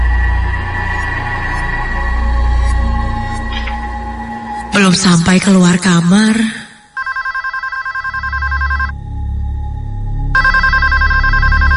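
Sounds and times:
low steady rumble: 0:00.0 - 0:04.4
speech: 0:04.8 - 0:06.6
telephone ringing: 0:07.0 - 0:08.9, 0:10.4 - 0:11.7.

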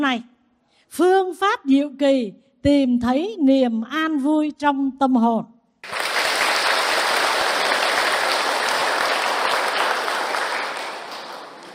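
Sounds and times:
speech: 0:00.0 - 0:00.3, 0:00.9 - 0:06.0
audience applause at a Buddhist dharma talk at a pagoda: 0:05.8 - 0:11.7.

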